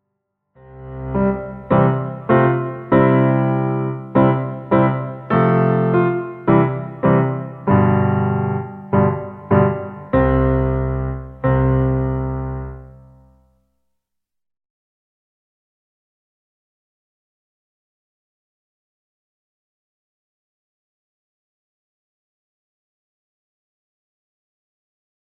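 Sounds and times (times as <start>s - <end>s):
intrada play-along music: 0.6s - 12.8s.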